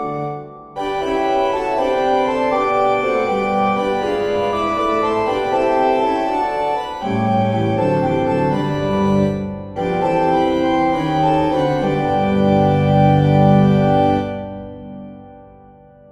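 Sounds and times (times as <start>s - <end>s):
musical improvisation: 0.0s - 15.2s.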